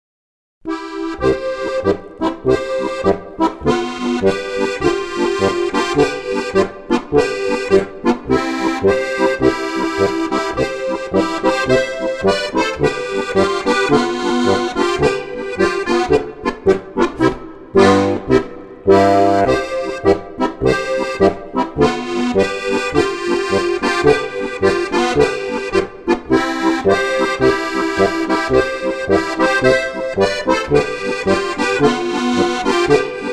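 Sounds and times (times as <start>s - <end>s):
polka music: 0.7s - 33.3s.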